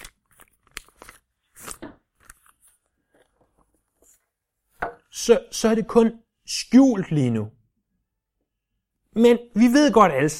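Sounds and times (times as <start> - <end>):
single sheet of paper being crumpled in the hand: 0.0 - 4.2
speech: 5.2 - 7.6, 9.2 - 10.3.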